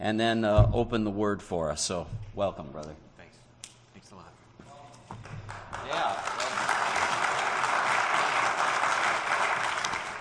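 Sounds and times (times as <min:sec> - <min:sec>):
speech: 0:00.0 - 0:03.1
audience applause: 0:05.3 - 0:10.1.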